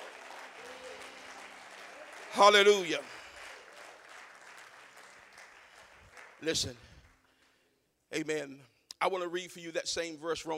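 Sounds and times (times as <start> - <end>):
audience hand clapping: 0.0 - 7.6
speech: 2.3 - 3.2, 6.4 - 6.8, 8.1 - 10.5.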